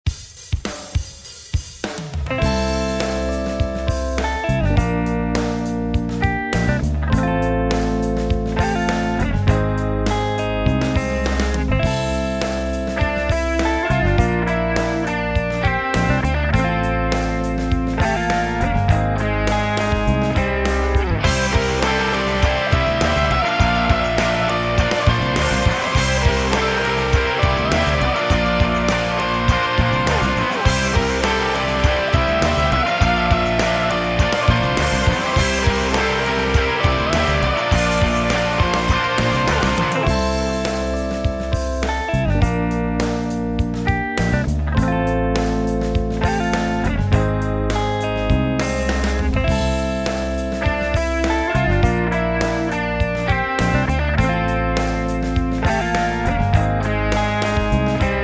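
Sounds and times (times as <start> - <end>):
funky rock music: 0.0 - 58.2.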